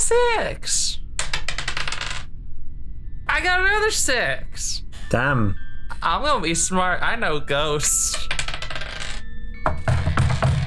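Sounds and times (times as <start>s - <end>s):
faint ringing hum: 0.0s - 10.6s
speech: 0.1s - 0.8s, 3.4s - 8.4s
dice rolling on a hard tabletop: 1.2s - 2.3s, 8.1s - 10.6s.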